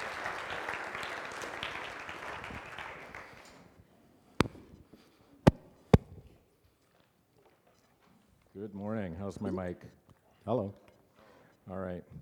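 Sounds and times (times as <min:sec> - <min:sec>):
audience applause at a morning church gathering: 0:00.0 - 0:03.5
sharp knocks: 0:05.5 - 0:06.2
speech: 0:08.6 - 0:10.8, 0:11.7 - 0:12.2.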